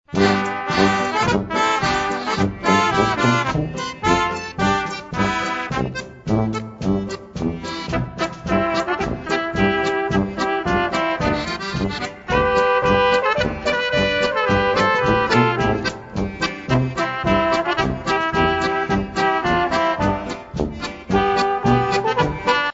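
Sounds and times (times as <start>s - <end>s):
polka music: 0.0s - 22.7s.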